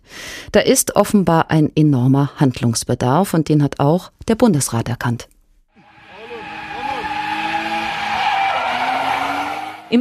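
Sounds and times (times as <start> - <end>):
speech: 0.5 - 5.4
street car race with squealing tires: 5.8 - 9.9.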